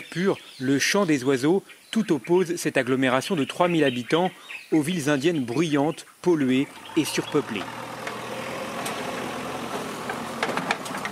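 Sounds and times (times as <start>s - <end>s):
speech: 0.0s - 8.0s
backhoe loader clearing earth and wood from a road: 6.6s - 11.0s.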